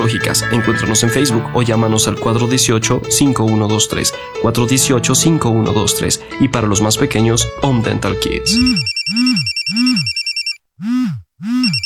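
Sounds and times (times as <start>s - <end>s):
telephone ringing: 0.0s - 2.6s, 8.5s - 10.6s
speech: 0.1s - 10.1s, 10.8s - 11.6s.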